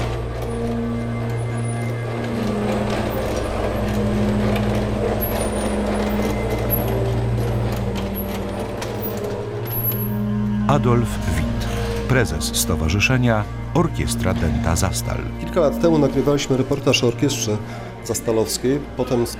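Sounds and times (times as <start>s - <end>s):
continuous mechanical rattling of locomotive: 0.0s - 19.3s
small locomotive engine droning: 0.0s - 19.3s
speech: 10.8s - 11.4s, 12.1s - 19.3s.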